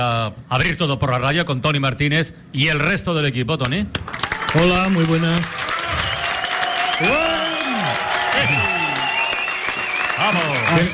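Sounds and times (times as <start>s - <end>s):
speech: 0.0s - 5.7s, 7.0s - 7.3s, 10.2s - 10.9s
studio audience applause at a live radio show: 4.0s - 10.9s
people cheering: 4.1s - 10.9s.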